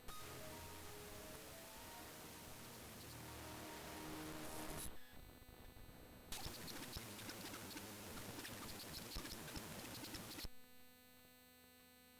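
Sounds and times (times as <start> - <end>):
Audigy 2ZS sound card distorted output: 0.1 - 5.2, 6.4 - 10.6.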